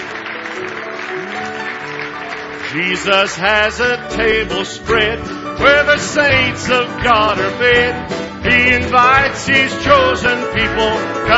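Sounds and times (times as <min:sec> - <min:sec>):
congregation clapping hands in praise during a church service: 0:00.0 - 0:04.7, 0:05.6 - 0:07.9
speech: 0:02.7 - 0:11.3.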